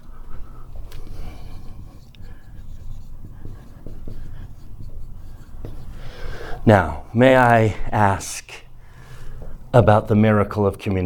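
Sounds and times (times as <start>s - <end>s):
pen writing: 1.0s - 6.4s
speech: 6.6s - 8.6s, 9.7s - 11.0s.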